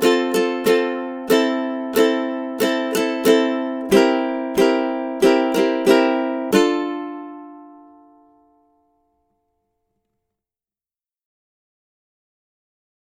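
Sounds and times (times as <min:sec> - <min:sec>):
ukulele playing a rhythm study: 0:00.0 - 0:09.4.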